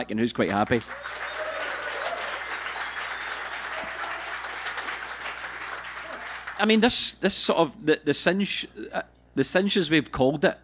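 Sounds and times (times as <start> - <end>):
speech: 0.0 - 1.2, 6.6 - 10.6
audience applause: 0.7 - 6.8.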